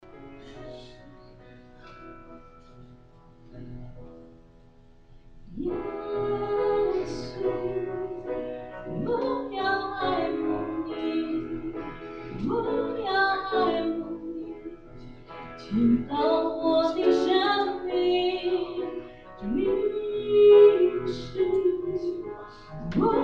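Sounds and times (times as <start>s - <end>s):
choir singing: 5.6s - 14.7s, 15.6s - 23.2s.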